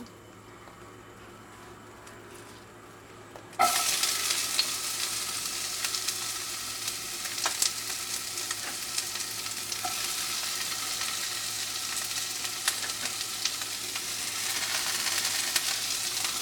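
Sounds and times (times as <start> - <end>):
chopped onions sizzling in oil in a pan over medium heat: 3.6 - 16.4.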